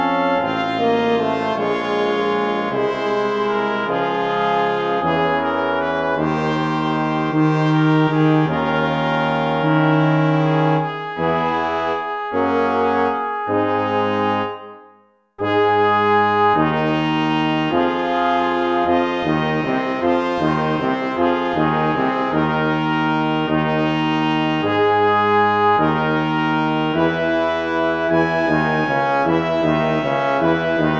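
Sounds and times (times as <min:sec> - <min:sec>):
brass quintet playing: 0:00.0 - 0:30.9.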